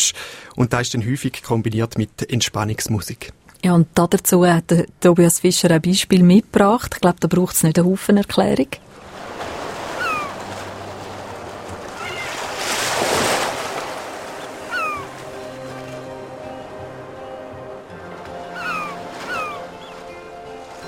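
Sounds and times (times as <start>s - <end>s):
speech: 0.1s - 9.1s
ocean surf: 8.8s - 20.8s
seabirds: 9.2s - 12.6s, 13.5s - 20.8s.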